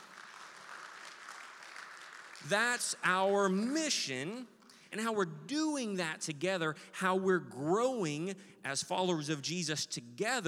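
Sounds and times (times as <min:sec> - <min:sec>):
audience clapping hands: 0:00.0 - 0:03.1
speech: 0:02.4 - 0:10.4.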